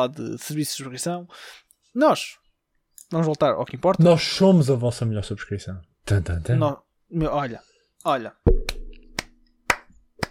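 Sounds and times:
speech: 0.0s - 2.4s, 3.0s - 8.5s
hand claps: 8.6s - 10.2s.

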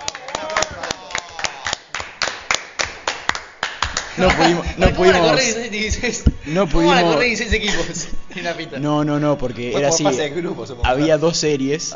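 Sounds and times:
hands clapping in applause: 0.0s - 4.7s
laughter: 4.1s - 8.7s
speech: 4.2s - 11.9s.

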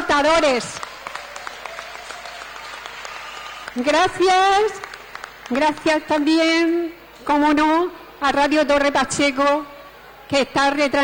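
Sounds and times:
speech: 0.1s - 0.9s, 3.8s - 4.8s, 5.5s - 9.7s, 10.3s - 11.0s
audience applause: 0.7s - 3.9s, 4.5s - 5.8s.

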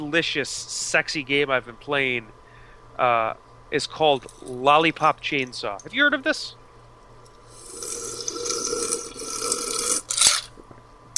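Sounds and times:
speech: 0.0s - 2.4s, 3.0s - 6.6s
person drinking fizzy soda: 7.5s - 10.6s.

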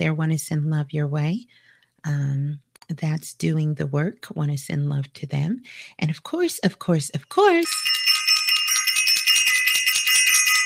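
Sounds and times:
speech: 0.0s - 8.1s
bell ringing: 7.6s - 10.6s.

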